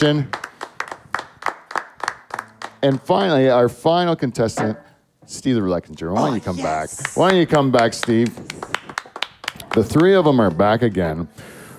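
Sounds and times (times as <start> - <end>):
speech: 0.0 - 0.4, 2.8 - 8.9, 9.8 - 11.6
audience clapping: 0.0 - 3.2, 6.4 - 11.2.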